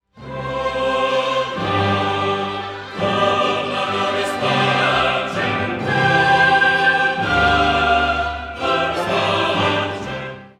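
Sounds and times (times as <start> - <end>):
choir singing: 0.1 - 10.5.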